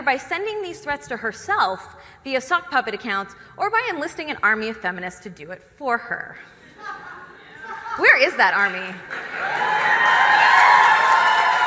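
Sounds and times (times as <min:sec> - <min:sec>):
speech: 0:00.0 - 0:06.6, 0:08.0 - 0:10.2
laughter: 0:06.6 - 0:08.5
crowd cheering wildly: 0:08.6 - 0:11.6.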